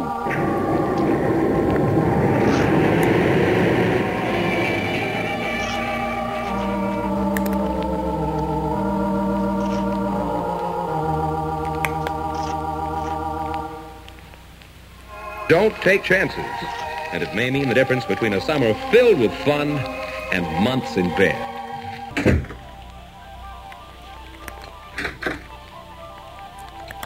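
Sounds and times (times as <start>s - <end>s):
ship's engines starting up: 0.0s - 27.0s
speech: 15.5s - 21.5s.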